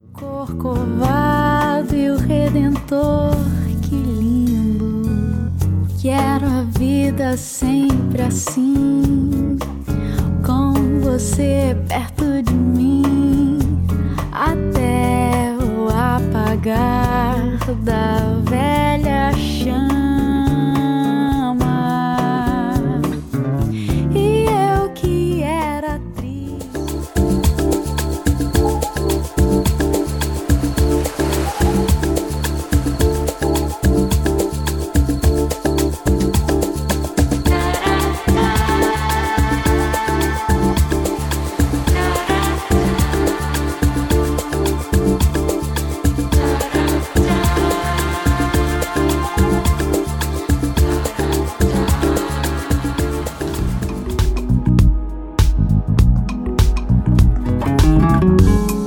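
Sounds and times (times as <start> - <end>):
latin lounge music: 0.0 - 58.8.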